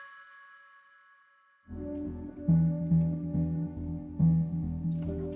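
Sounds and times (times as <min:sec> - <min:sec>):
ambience: 0:01.7 - 0:05.3.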